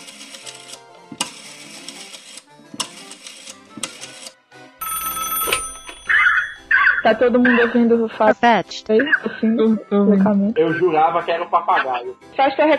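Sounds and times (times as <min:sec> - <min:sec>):
telephone ringing: 0:04.8 - 0:07.3
speech: 0:07.1 - 0:12.7.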